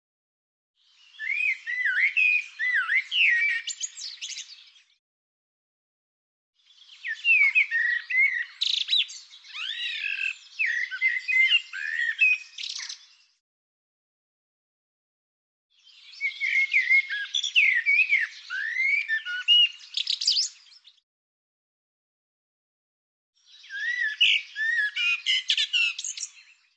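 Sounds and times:
bird song: 0.8 - 5.0, 6.6 - 13.4, 15.7 - 21.0, 23.4 - 26.7.

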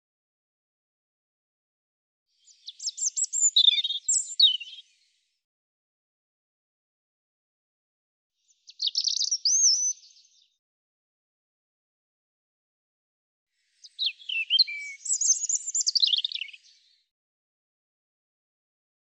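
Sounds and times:
European robin singing warbled phrases: 2.4 - 5.0, 8.5 - 10.5, 13.7 - 17.0.

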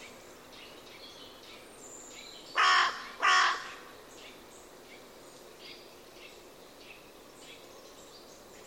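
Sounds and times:
bird cawing: 2.6 - 3.9.

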